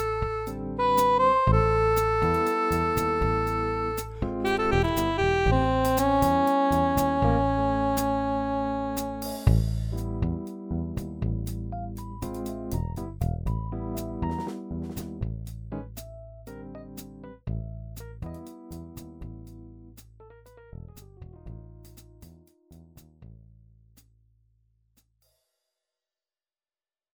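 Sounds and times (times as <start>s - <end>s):
jazz big band music: 0.0s - 17.2s.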